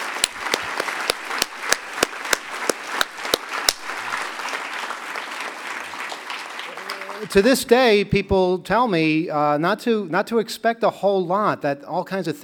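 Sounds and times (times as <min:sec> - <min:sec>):
audience round of applause: 0:00.0 - 0:07.6
speech: 0:07.3 - 0:12.4.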